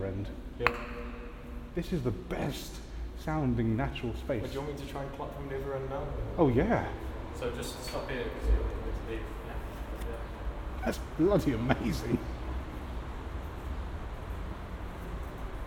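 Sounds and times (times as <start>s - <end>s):
reverberant ambience in an underpass: 0.0s - 15.6s.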